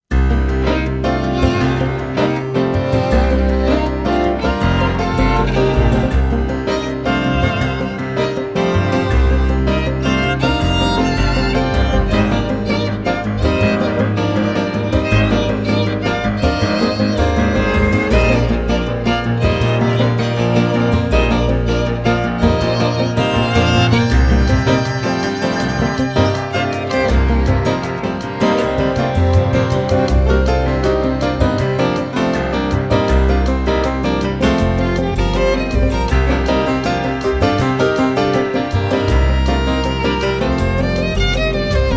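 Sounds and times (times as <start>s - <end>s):
jazzy music: 0.0s - 41.9s.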